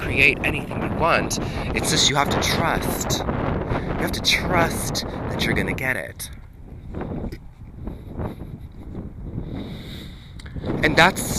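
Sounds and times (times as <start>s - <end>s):
strong wind blowing into microphone: 0.0s - 11.3s
speech: 0.2s - 7.4s, 10.7s - 11.3s.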